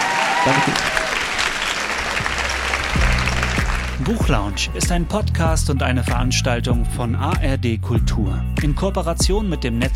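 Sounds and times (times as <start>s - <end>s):
audience applause at a book launch evening: 0.0s - 4.2s
speech: 0.4s - 1.0s, 4.0s - 9.9s.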